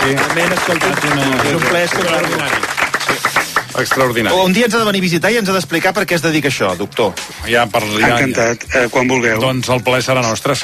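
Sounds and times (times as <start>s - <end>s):
audience applause: 0.0s - 4.4s
speech: 0.0s - 10.6s.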